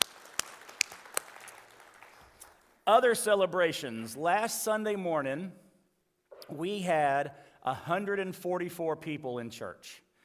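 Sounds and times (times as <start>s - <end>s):
audience applause: 0.0s - 2.7s
speech: 2.9s - 5.6s, 6.5s - 10.0s.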